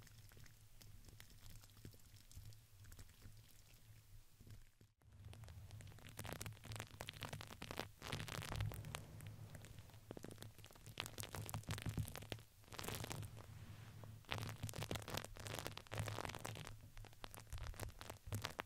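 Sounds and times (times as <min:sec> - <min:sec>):
crinkles of plastic or paper: 0:00.0 - 0:18.6
low steady hum: 0:08.3 - 0:10.2.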